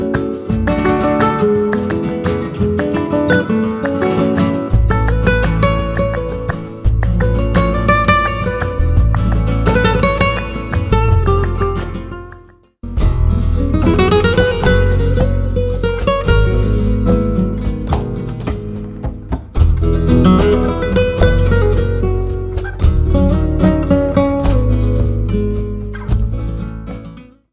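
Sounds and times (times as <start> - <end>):
flamenco guitars: 0.0 - 27.5.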